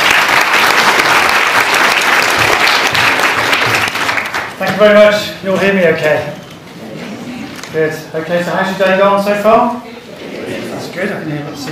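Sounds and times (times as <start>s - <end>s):
audience round of applause: 0.0s - 4.6s
speech: 4.8s - 6.4s, 7.7s - 9.8s.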